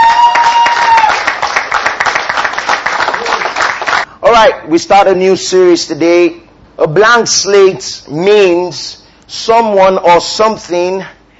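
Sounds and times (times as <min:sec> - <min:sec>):
church congregation applauding to welcome its online audience: 0:00.0 - 0:04.1
speech: 0:04.4 - 0:11.2.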